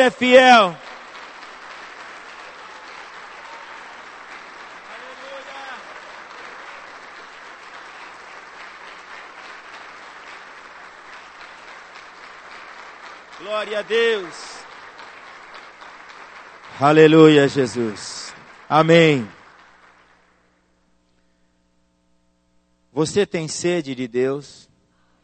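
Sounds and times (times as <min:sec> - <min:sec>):
speech: 0:00.0 - 0:00.8, 0:13.5 - 0:14.5, 0:16.8 - 0:19.4, 0:23.0 - 0:24.7
audience applause: 0:00.0 - 0:20.5.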